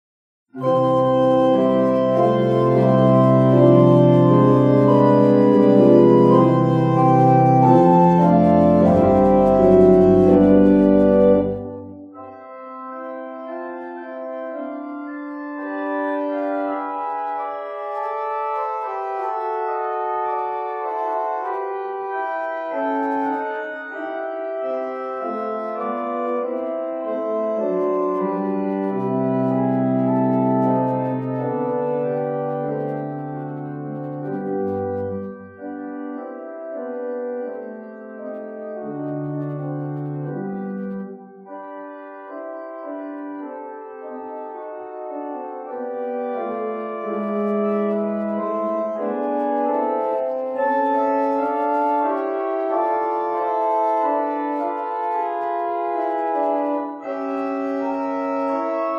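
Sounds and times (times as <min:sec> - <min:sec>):
prelude in C major: 0:00.6 - 0:58.9.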